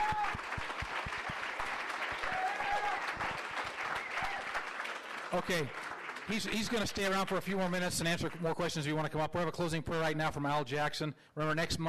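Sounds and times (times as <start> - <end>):
faint cheers or whistles: 0.0 - 0.7, 2.1 - 4.7
crowd applauding: 0.0 - 8.4
speech: 5.3 - 11.8.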